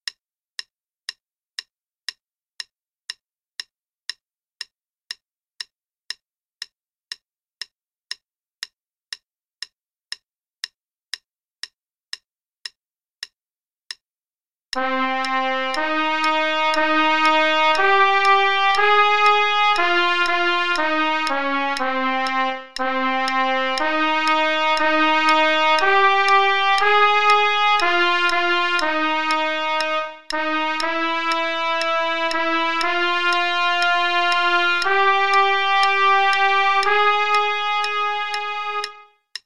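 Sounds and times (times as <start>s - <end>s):
trumpet playing in A flat: 14.8s - 39.1s
metronome click at 120 beats per minute: 14.8s - 39.4s.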